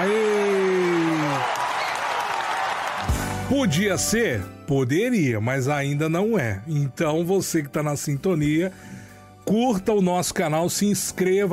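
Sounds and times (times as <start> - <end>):
studio audience applause as a guest enters: 0.0 - 3.5
speech: 3.5 - 11.5.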